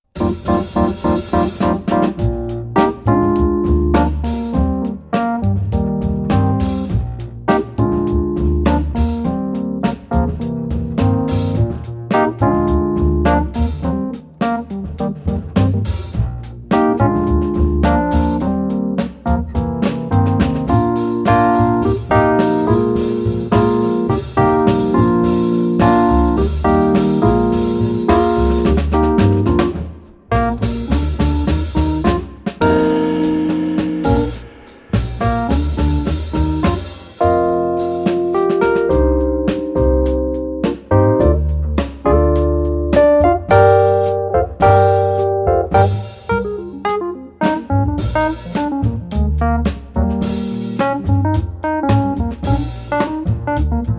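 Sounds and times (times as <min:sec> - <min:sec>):
jazz trio playing: 0:00.0 - 0:53.9.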